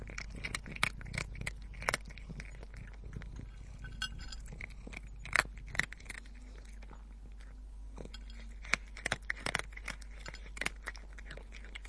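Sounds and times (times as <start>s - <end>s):
cat eating, crunching and chewing: 0.0s - 11.8s.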